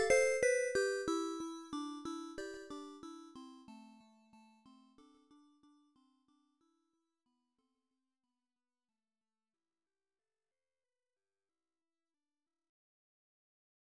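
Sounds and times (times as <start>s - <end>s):
music box: 0.0s - 1.4s.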